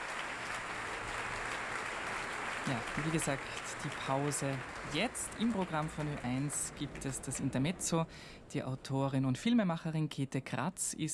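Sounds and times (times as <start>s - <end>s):
concert audience applause: 0.0s - 7.9s
speech: 2.6s - 11.1s.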